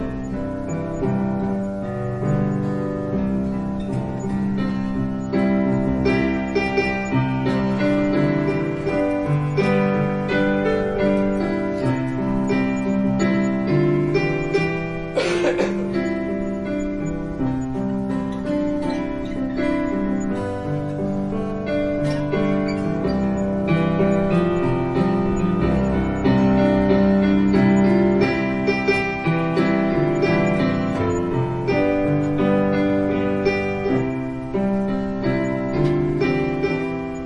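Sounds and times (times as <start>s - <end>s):
guitar: 0.0s - 37.2s
piano: 0.0s - 37.2s.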